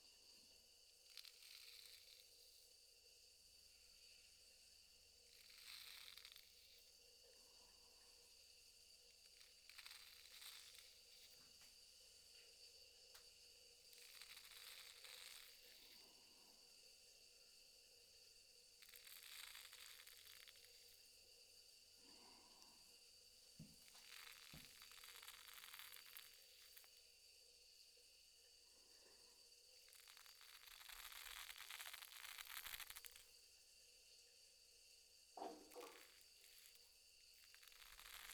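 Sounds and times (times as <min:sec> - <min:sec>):
classic shaving: 0:01.0 - 0:02.6, 0:05.1 - 0:07.0, 0:09.0 - 0:11.7, 0:13.2 - 0:16.1, 0:18.7 - 0:21.1, 0:23.6 - 0:27.0, 0:29.8 - 0:33.4, 0:35.4 - 0:38.3.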